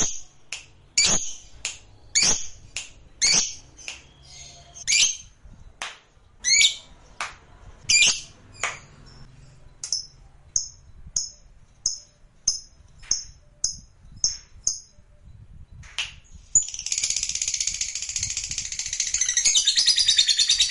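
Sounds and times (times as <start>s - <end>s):
lovebird chirping: 1.0s - 5.3s, 6.4s - 7.0s, 7.9s - 9.3s, 16.6s - 20.6s.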